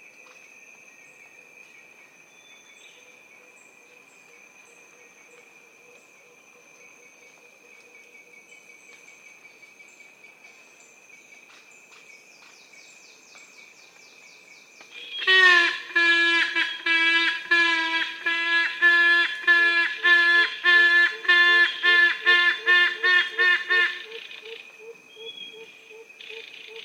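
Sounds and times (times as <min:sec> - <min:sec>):
yellow-casqued hornbills braying calls: 0:15.2 - 0:24.6.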